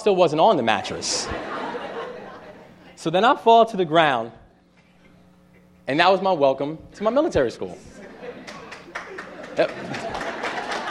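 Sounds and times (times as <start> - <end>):
speech: 0.0 - 1.6, 3.0 - 4.4, 5.9 - 8.0, 9.6 - 10.2
laughter: 0.9 - 3.0, 7.7 - 10.8
audience applauding: 8.4 - 10.8.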